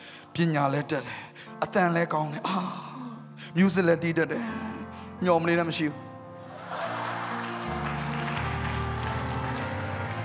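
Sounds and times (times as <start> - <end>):
speech: 0.4 - 2.8, 3.6 - 4.6, 5.2 - 6.0
crowd applauding: 6.5 - 10.2.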